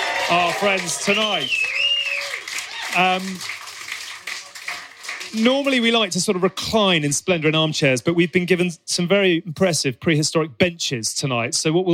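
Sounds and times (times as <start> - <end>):
audience cheering: 0.0 - 6.6
speech: 0.3 - 1.8, 2.9 - 3.6, 5.3 - 11.9.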